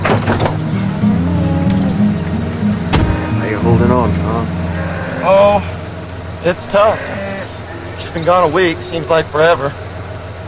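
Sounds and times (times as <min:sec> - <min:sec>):
pickup truck engine rumbling as it pulls in: 0:00.0 - 0:10.4
brief clunk: 0:02.9 - 0:03.3
speech: 0:06.4 - 0:07.2, 0:08.1 - 0:09.8.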